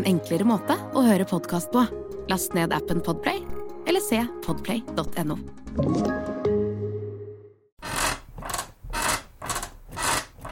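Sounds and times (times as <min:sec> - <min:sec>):
speech: 0:00.0 - 0:06.3
bed creaking: 0:07.8 - 0:10.5.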